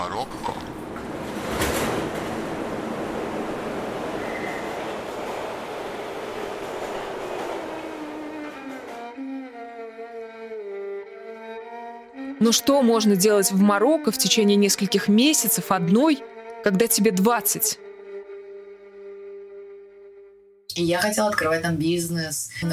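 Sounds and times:
metro train departing: 0.0s - 11.1s
speech: 12.4s - 17.8s, 20.8s - 22.7s.

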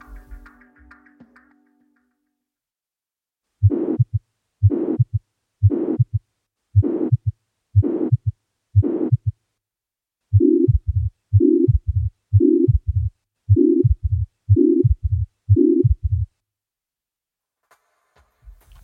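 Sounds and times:
heartbeat: 3.6s - 9.4s, 10.3s - 16.4s.

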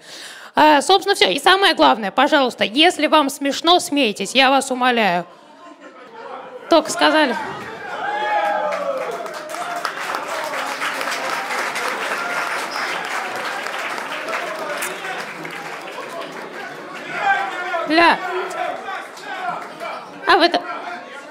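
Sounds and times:
speech: 0.6s - 5.4s, 6.7s - 7.5s, 17.9s - 18.3s, 20.3s - 20.7s
murmured chatter: 5.0s - 21.2s
crowd applause: 7.0s - 21.2s.

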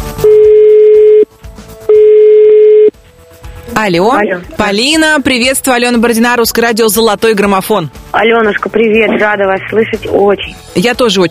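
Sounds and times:
telephone ringback tone on an outgoing call: 0.2s - 1.3s, 1.9s - 2.9s
speech: 3.8s - 11.2s.

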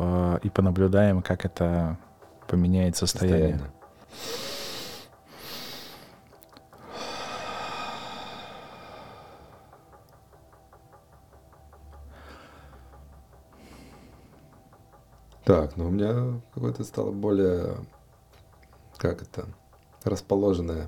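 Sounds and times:
speech: 0.4s - 4.5s, 15.5s - 18.0s, 19.0s - 20.8s
inhale and double exhale in a breathing exercise: 4.1s - 6.2s, 6.8s - 9.8s, 12.1s - 13.0s, 13.6s - 14.4s.

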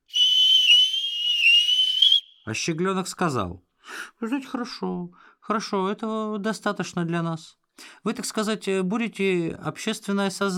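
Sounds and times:
shrill steady whistle: 0.0s - 2.5s
speech: 2.4s - 10.5s.

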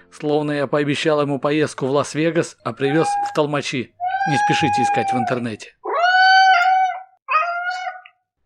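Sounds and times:
speech: 0.1s - 5.8s
cat yowling loudly: 2.8s - 8.2s.

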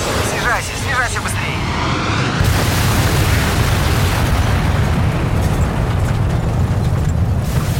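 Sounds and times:
dense sustained roar of rumbling debris: 0.0s - 7.7s
mid-air airliner collision explosion: 1.7s - 6.8s.

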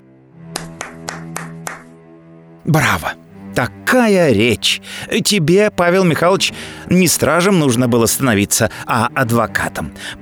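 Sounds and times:
loud hand clapping: 0.5s - 2.0s
speech: 2.6s - 10.2s.

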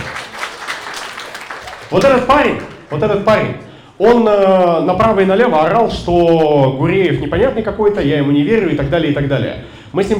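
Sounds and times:
audience applause: 0.0s - 3.3s
speech: 1.9s - 10.1s.

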